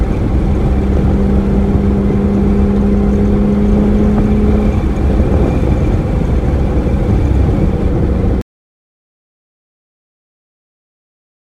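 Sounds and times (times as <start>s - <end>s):
sports car valved exhaust with stock and aftermarket overpipes: 0.0s - 8.4s.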